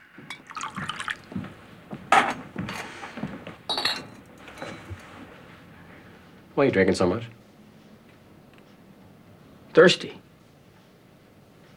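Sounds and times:
whiskey poured from decanter into glass: 0.3 - 1.4
speech: 6.6 - 7.4, 9.8 - 10.2.

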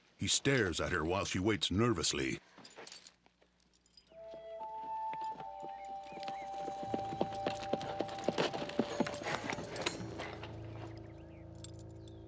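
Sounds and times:
speech: 0.2 - 2.5
horse hooves clip-clopping while walking: 2.6 - 12.2.

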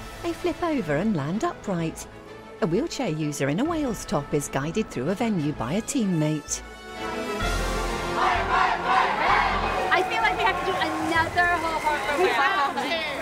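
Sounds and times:
speech: 0.2 - 7.5
cheerleading squad chanting a cheer: 7.8 - 13.1.

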